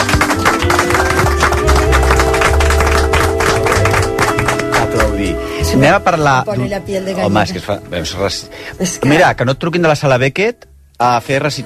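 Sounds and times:
applause: 0:00.0 - 0:05.8
speech: 0:05.8 - 0:11.6.

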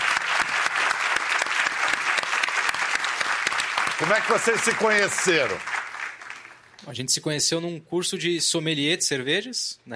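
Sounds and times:
audience applause: 0:00.0 - 0:06.7
speech: 0:04.0 - 0:05.8, 0:06.8 - 0:09.9.

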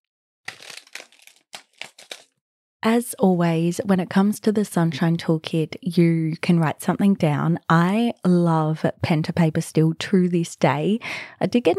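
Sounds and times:
seed packet being torn open: 0:00.5 - 0:02.4
speech: 0:02.8 - 0:11.7.

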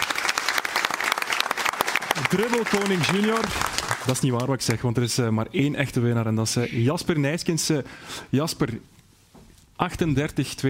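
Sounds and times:
audience applause: 0:00.0 - 0:04.5
speech: 0:02.2 - 0:09.0, 0:09.8 - 0:10.6.

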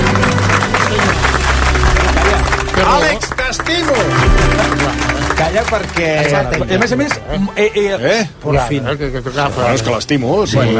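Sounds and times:
standing audience clapping: 0:00.0 - 0:07.9
speech: 0:05.6 - 0:10.7.

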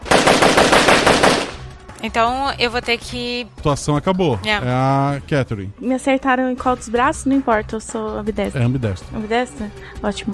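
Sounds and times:
gunfire shooting at car window: 0:00.0 - 0:01.7
speech: 0:02.0 - 0:10.3.

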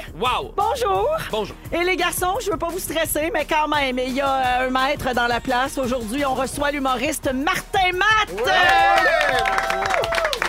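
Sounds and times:
speech: 0:00.2 - 0:10.4
applause in a radio studio: 0:08.3 - 0:10.4.

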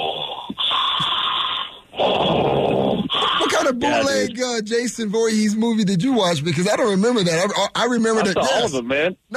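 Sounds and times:
voice imitating heavy horror-villain breathing: 0:00.0 - 0:03.8
speech: 0:03.8 - 0:09.3.

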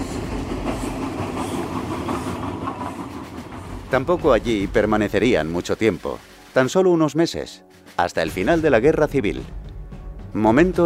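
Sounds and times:
special train travelling on rails: 0:00.0 - 0:06.6
speech: 0:03.9 - 0:09.6, 0:10.3 - 0:10.8.

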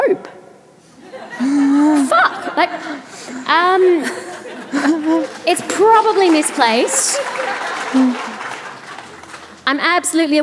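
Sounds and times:
laughter: 0:01.0 - 0:03.2, 0:03.9 - 0:09.2
speech: 0:02.6 - 0:08.3, 0:09.7 - 0:10.4
audience applause: 0:04.7 - 0:09.6.

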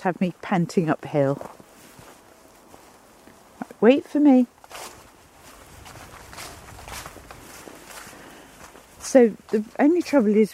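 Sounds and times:
speech: 0:00.0 - 0:01.6, 0:03.8 - 0:05.0, 0:09.1 - 0:10.5
footsteps trudging through leaves: 0:01.5 - 0:03.6, 0:04.5 - 0:10.5.

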